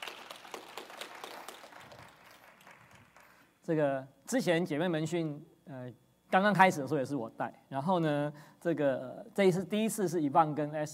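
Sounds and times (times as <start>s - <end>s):
audience applause: 0.0s - 3.4s
speech: 3.7s - 10.9s.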